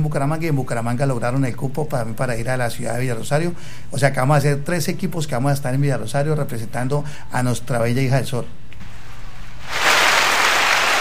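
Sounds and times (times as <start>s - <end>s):
speech: 0.0s - 8.6s
applause for a youth football team: 9.6s - 10.9s.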